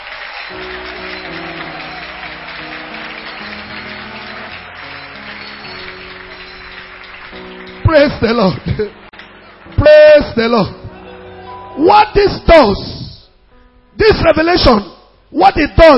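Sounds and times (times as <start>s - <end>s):
audience clapping hands: 0.0s - 11.3s
speech: 7.9s - 9.0s, 9.8s - 10.8s, 11.8s - 12.9s, 14.0s - 15.9s.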